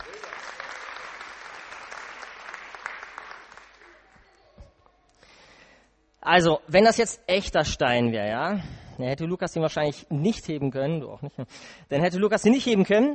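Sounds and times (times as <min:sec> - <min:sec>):
audience applause: 0:00.0 - 0:04.2
speech: 0:06.2 - 0:13.1.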